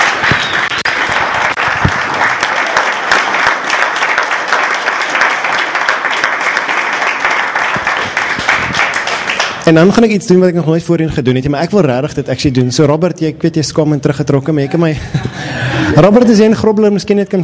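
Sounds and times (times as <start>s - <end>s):
audience clapping: 0.0s - 10.0s
speech: 9.7s - 17.4s
laughter: 14.6s - 16.5s.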